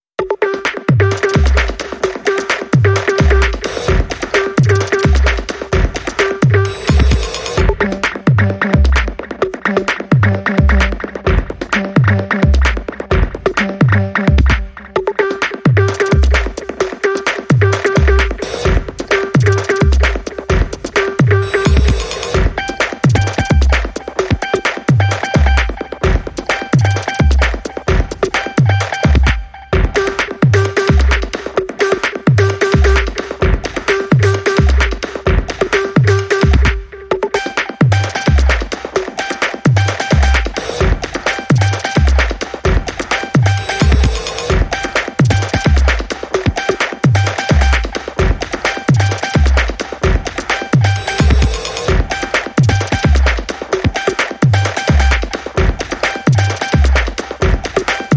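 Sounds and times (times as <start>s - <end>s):
big bouncy beat: 0.1s - 58.1s.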